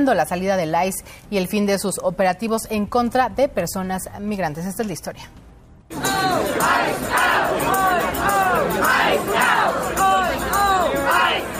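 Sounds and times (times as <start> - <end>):
speech: 0.0 - 7.8
protesters chanting in the Bronx: 5.9 - 11.5.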